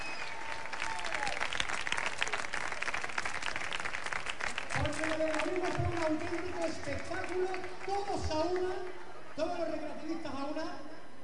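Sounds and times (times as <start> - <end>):
applause: 0.0 - 9.0
speech: 6.1 - 10.9.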